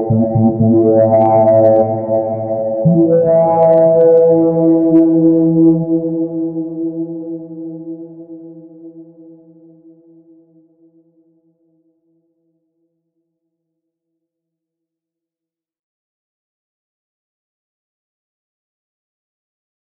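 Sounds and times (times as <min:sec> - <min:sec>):
sine tone: 0:00.0 - 0:10.5.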